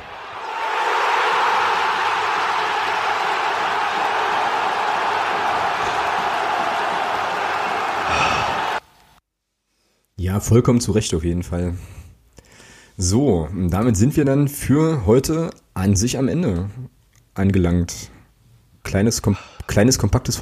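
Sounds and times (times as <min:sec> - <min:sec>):
crowd cheering and applause sound effect: 0:00.0 - 0:08.8
speech: 0:10.4 - 0:12.0, 0:13.0 - 0:16.8, 0:17.4 - 0:18.2, 0:18.8 - 0:20.4.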